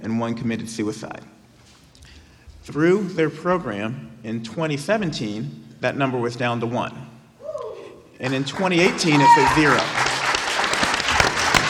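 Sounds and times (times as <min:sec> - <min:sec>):
speech: 0:00.2 - 0:01.4, 0:02.7 - 0:07.1, 0:08.2 - 0:10.0
audience applause: 0:08.2 - 0:11.6.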